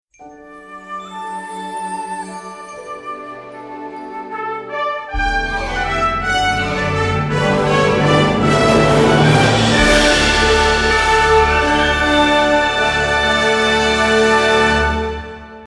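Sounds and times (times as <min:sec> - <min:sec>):
fanfare: 0:04.2 - 0:15.0.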